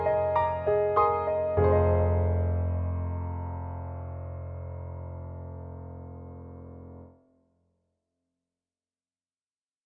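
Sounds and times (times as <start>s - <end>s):
soft pop piano: 0.0s - 6.2s.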